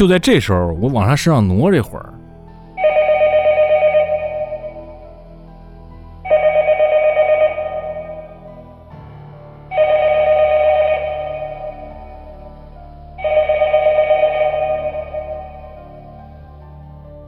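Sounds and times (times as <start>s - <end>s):
speech: 0.0s - 2.2s
telephone bell ringing: 2.8s - 5.0s, 6.3s - 8.5s, 9.7s - 12.4s, 13.2s - 16.2s.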